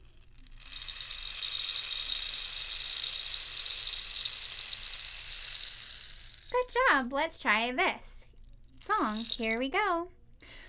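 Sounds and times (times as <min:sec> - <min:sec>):
rain stick pouring a cascade of tiny pellets: 0:00.0 - 0:07.1, 0:08.3 - 0:09.6
speech: 0:07.0 - 0:08.1, 0:09.0 - 0:10.2.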